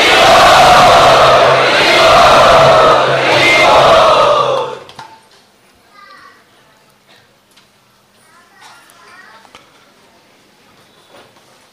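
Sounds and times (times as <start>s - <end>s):
crowd at a Ukrainian community gathering chanting in unison to welcome a speaker: 0.0s - 4.9s.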